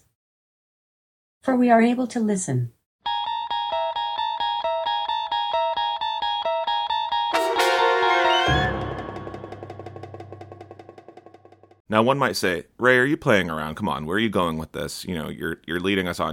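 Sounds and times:
speech: 1.4s - 2.8s, 11.9s - 16.3s
eerie television show theme music: 3.1s - 11.7s.

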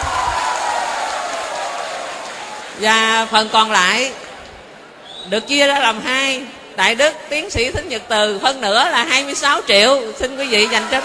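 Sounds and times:
audience applause: 0.0s - 2.8s
speech: 2.8s - 4.2s, 5.2s - 11.0s.

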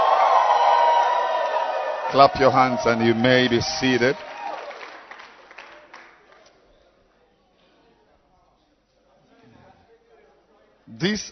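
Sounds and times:
crowd shouting and cheering: 0.0s - 6.0s
speech: 2.1s - 4.3s, 11.0s - 11.3s.

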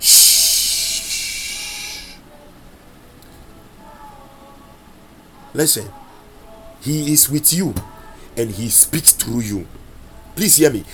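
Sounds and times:
person making a long breathy shushing hiss: 0.0s - 2.2s
speech: 5.5s - 6.1s, 6.8s - 9.8s, 10.4s - 10.9s.

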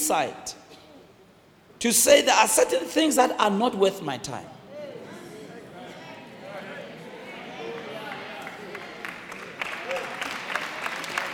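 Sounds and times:
speech: 0.1s - 0.6s, 1.8s - 4.6s
steady murmur of crowd noise: 4.6s - 9.6s
sparse half-hearted audience clapping: 7.7s - 11.3s.

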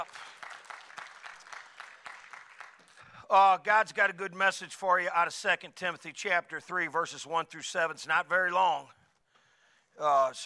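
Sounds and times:
crowd clapping: 0.0s - 3.0s
speech: 3.3s - 9.0s, 10.0s - 10.4s.

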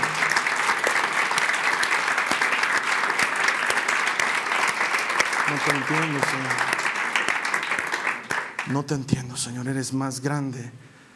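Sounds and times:
audience applauding: 0.0s - 8.9s
speech: 5.6s - 6.9s, 8.7s - 10.9s.

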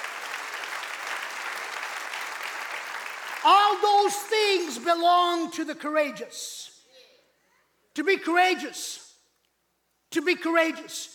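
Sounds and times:
audience clapping: 0.0s - 4.9s
speech: 3.4s - 6.7s, 8.0s - 9.0s, 10.1s - 11.1s.

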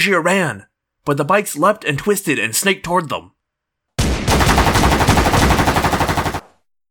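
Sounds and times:
speech: 0.0s - 3.4s
rifle and automatic weapon gunfire: 4.0s - 6.6s.

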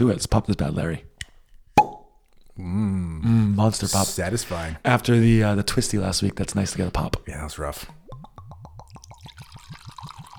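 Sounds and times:
speech: 0.0s - 1.1s, 2.6s - 8.0s
single malt 12-year whisky glugging out of a bottle neck: 7.9s - 10.3s.

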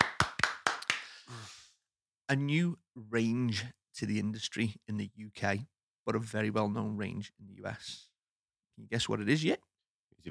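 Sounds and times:
hand claps: 0.0s - 1.3s
speech: 2.3s - 8.1s, 8.8s - 10.2s.

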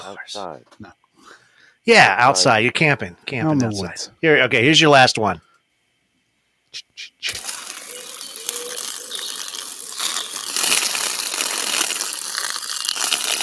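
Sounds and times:
speech: 0.0s - 5.5s, 6.7s - 7.5s
dry leaves rustling: 7.3s - 13.4s.

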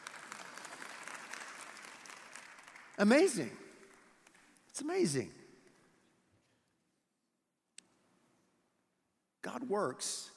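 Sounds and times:
audience applause: 0.0s - 4.1s
speech: 3.0s - 3.6s, 4.8s - 5.4s, 9.6s - 10.3s.

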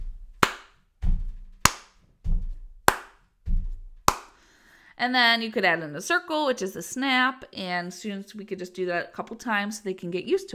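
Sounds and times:
low thudding foot stomps: 0.0s - 4.4s
sharp bright hand claps: 0.4s - 0.8s, 1.6s - 2.0s, 2.9s - 3.2s, 4.1s - 4.4s
speech: 5.0s - 10.5s.

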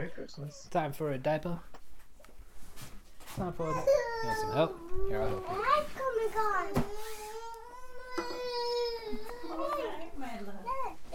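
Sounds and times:
speech: 0.0s - 1.8s, 3.4s - 7.2s
baby crying during a diaper change: 3.6s - 5.8s, 7.4s - 10.1s.

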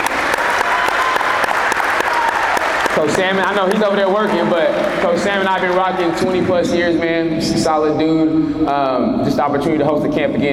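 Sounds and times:
audience round of applause: 0.0s - 6.3s
speech: 3.0s - 10.5s.

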